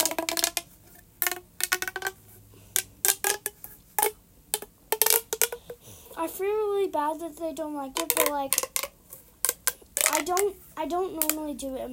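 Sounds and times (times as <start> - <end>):
plastic snap tube fidget toy clicking: 0.0 - 2.2, 2.8 - 5.8, 8.0 - 10.5, 11.1 - 11.4
speech: 6.2 - 8.8, 10.3 - 11.9.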